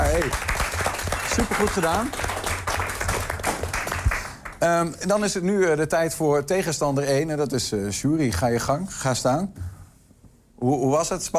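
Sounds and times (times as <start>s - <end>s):
audience applause: 0.0s - 4.6s
speech: 1.4s - 2.2s, 4.6s - 9.7s, 10.6s - 11.3s.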